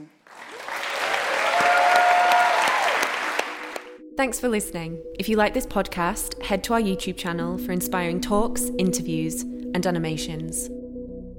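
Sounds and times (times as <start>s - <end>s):
audience applause: 0.0s - 4.0s
speech: 4.2s - 10.8s.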